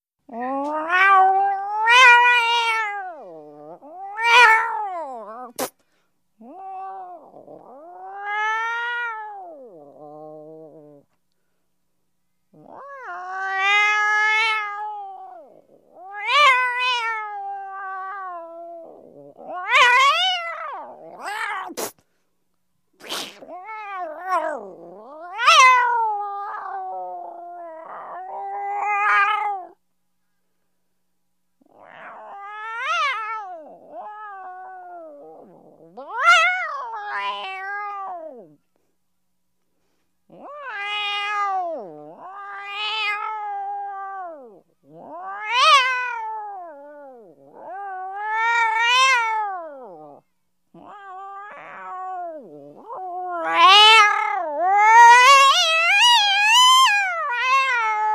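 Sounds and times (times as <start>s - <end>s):
angry cat yowling: 0.3s - 5.7s, 6.4s - 11.0s, 12.6s - 21.9s, 23.0s - 29.8s, 31.6s - 38.6s, 40.3s - 50.2s, 50.8s - 58.1s
angry cat spitting: 5.5s - 5.8s, 21.6s - 22.0s, 23.0s - 23.5s.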